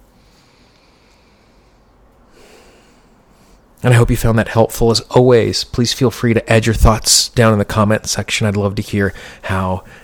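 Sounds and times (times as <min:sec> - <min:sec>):
low steady hiss: 0:00.0 - 0:10.0
deep breath during a tapping exercise: 0:00.2 - 0:03.7, 0:09.2 - 0:10.0
speech: 0:03.8 - 0:10.0.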